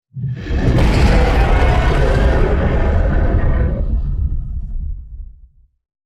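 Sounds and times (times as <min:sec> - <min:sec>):
T Rex dinosaur roar attack: 0:00.3 - 0:05.0.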